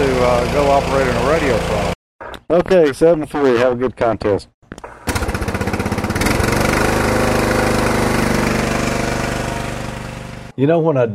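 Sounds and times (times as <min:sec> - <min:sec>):
small electrical generator engine revving up: 0:00.0 - 0:02.0, 0:04.8 - 0:10.5
speech: 0:00.2 - 0:04.9, 0:10.6 - 0:11.1.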